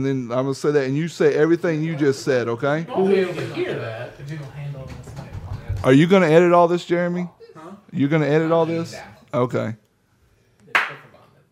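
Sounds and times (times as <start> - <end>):
speech: 0.0 - 5.0, 5.8 - 9.8
hand clap marking an editing spot: 10.7 - 11.1.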